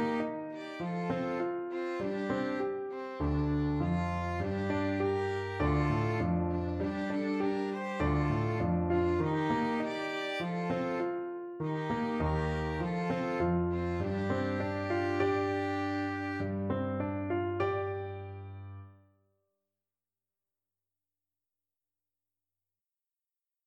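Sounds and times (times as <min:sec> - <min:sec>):
violin: 0:00.0 - 0:18.6
piano: 0:00.0 - 0:19.2.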